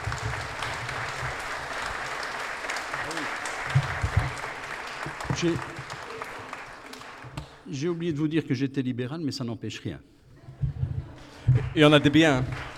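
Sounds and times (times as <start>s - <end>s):
audience applause at a public open-mic gathering: 0.0s - 7.7s, 11.2s - 12.7s
speech: 5.4s - 5.8s, 7.7s - 10.2s, 11.7s - 12.7s.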